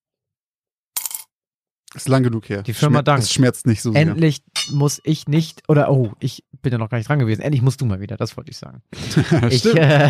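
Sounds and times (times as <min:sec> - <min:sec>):
coin dropped into a glass jar: 0:01.0 - 0:01.3
speech: 0:02.0 - 0:10.0
laughter: 0:08.9 - 0:10.0.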